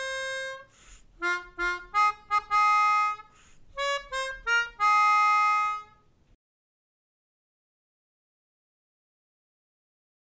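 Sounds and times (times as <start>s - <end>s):
melodica melody: 0.0s - 6.1s.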